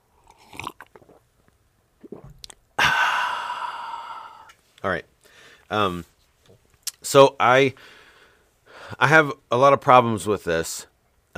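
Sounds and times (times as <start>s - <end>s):
sipping coffee: 0.1s - 2.6s
speech: 4.8s - 5.1s, 5.7s - 6.1s, 7.0s - 8.0s, 8.9s - 11.3s.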